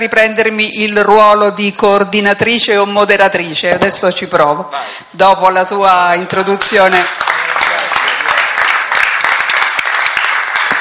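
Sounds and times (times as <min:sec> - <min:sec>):
speech: 0:00.0 - 0:07.5
applause: 0:06.8 - 0:10.7.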